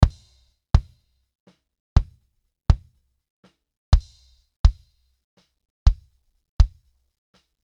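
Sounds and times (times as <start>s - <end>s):
kick drum: 0.0s - 1.0s, 2.0s - 3.0s, 3.9s - 5.0s, 5.9s - 6.9s.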